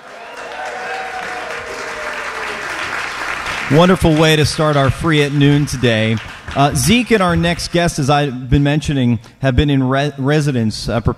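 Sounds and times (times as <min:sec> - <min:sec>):
audience applause at a live noon concert: 0:00.0 - 0:07.9
speech: 0:03.7 - 0:11.1.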